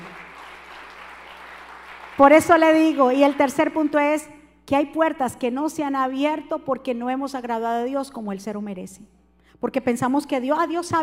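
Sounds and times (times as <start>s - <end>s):
audience applause: 0.0s - 2.3s
speech: 2.2s - 11.0s.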